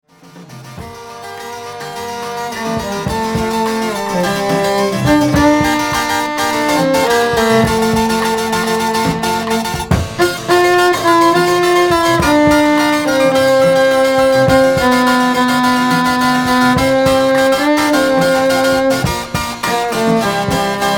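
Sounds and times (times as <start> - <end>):
baroque jazz trio: 0.5 - 20.9.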